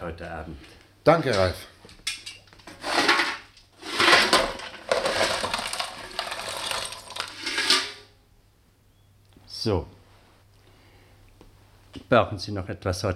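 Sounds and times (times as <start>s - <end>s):
speech: 0.0s - 1.8s, 9.6s - 10.0s, 12.1s - 13.1s
coal being added to a fireplace: 2.3s - 8.1s.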